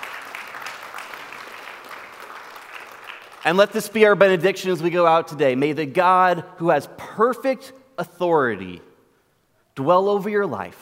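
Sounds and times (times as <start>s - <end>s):
audience applause: 0.0s - 3.7s
speech: 3.4s - 8.9s, 9.8s - 10.8s.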